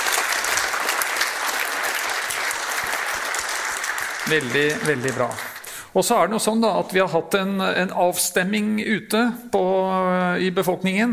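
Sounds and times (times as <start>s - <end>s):
audience applause: 0.0s - 5.8s
speech: 4.2s - 11.1s.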